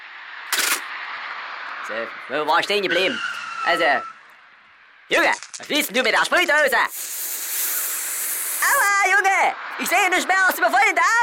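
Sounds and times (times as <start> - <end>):
speed camera flash sound effect burst: 0.5 - 0.9, 6.9 - 8.9
speech: 1.9 - 4.1, 5.1 - 7.1, 9.4 - 11.2
steady hiss: 5.8 - 9.2.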